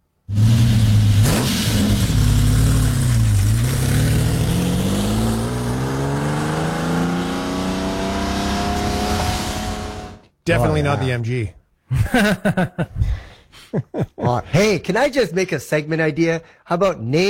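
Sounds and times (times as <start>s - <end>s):
Lamborghini Countach engine revving: 0.3s - 10.2s
speech: 10.5s - 17.2s
laughter: 11.9s - 13.0s, 13.6s - 14.5s.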